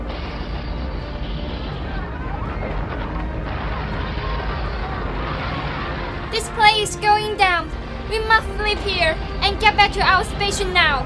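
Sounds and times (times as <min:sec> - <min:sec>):
ground shaking: 0:00.0 - 0:07.1
people screaming: 0:01.0 - 0:06.4
speech: 0:06.4 - 0:11.0.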